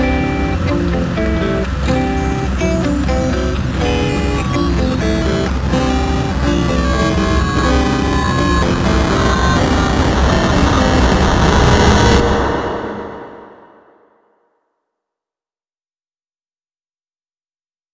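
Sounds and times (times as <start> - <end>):
instrumental music: 0.0 - 12.2.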